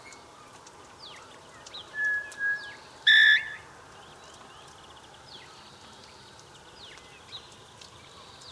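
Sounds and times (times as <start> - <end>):
Eurasian bullfinch Pyrrhula pyrrhula whistled calls: 2.0 - 3.7.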